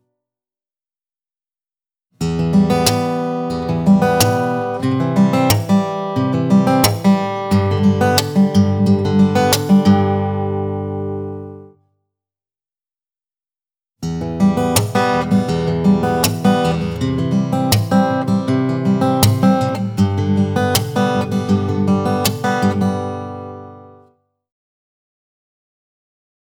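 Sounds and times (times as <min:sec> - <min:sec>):
acoustic guitar strumming: 0:02.2 - 0:11.7, 0:14.0 - 0:24.0.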